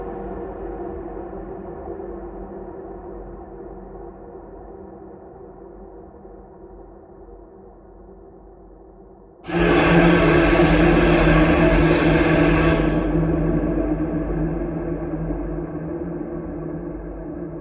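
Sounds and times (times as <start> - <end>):
scream: 9.5 - 14.7.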